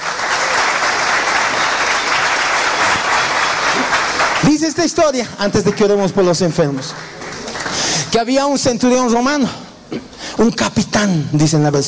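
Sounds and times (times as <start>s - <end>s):
audience applause: 0.0s - 8.2s
speech: 4.5s - 7.2s, 8.1s - 11.8s.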